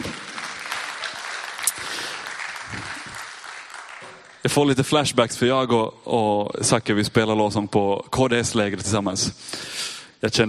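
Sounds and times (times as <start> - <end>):
applause: 0.0 - 4.8
speech: 4.4 - 10.4.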